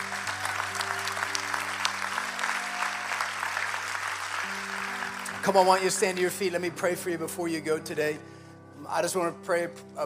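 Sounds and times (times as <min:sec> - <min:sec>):
audience clapping: 0:00.0 - 0:06.6
speech: 0:05.4 - 0:08.3, 0:08.9 - 0:10.0.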